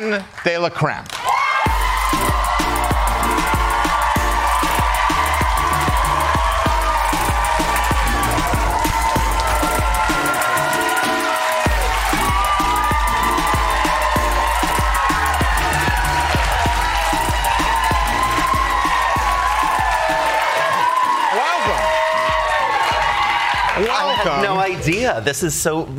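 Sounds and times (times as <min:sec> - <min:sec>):
speech: 0:00.0 - 0:01.2, 0:24.2 - 0:25.9
audience cheering and applause at a show: 0:00.0 - 0:25.2.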